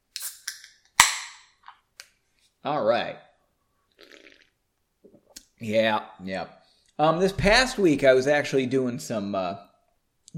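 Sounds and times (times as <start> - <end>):
beer can being opened: 0.1 - 1.4
speech: 2.6 - 3.3, 5.6 - 9.7.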